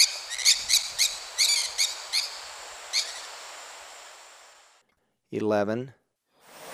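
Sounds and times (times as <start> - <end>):
maroon-tailed parakeet calls: 0.0 - 3.4
speech: 5.3 - 6.0.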